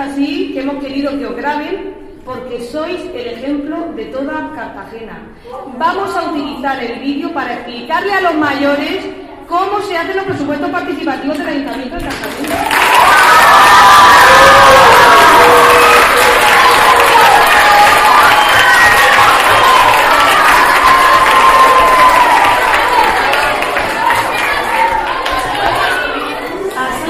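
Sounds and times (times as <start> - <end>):
speech: 0.0 - 14.1
applause: 12.1 - 26.2
cheering: 12.4 - 27.0.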